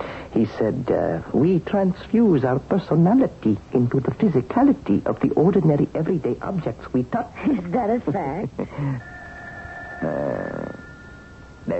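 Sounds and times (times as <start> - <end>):
speech: 0.4 - 9.1, 10.0 - 10.6
telephone ringing: 9.0 - 11.7
wavering harmonic cry: 9.0 - 11.7.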